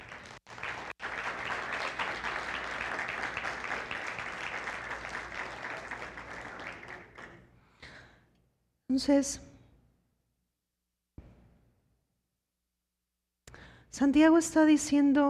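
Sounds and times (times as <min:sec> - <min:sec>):
audience applause: 0:00.0 - 0:07.5
speech: 0:09.0 - 0:09.5, 0:14.0 - 0:15.2.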